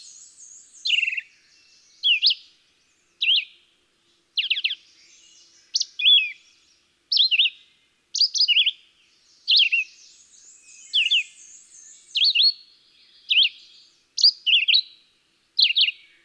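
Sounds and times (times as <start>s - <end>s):
Red-eyed Vireo singing whistled phrases: 0.0s - 2.4s, 3.2s - 3.5s, 4.4s - 6.5s, 7.1s - 7.6s, 8.2s - 8.8s, 9.5s - 14.9s, 15.6s - 16.2s.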